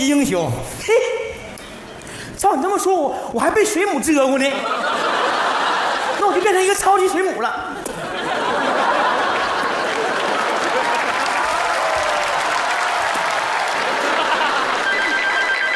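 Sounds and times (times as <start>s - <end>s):
speech: 0.0s - 1.1s, 2.4s - 5.6s, 6.2s - 7.8s
laughter: 4.5s - 6.6s, 7.6s - 15.5s
applause and crowd noise: 9.0s - 15.7s
telephone ringing: 14.3s - 15.7s.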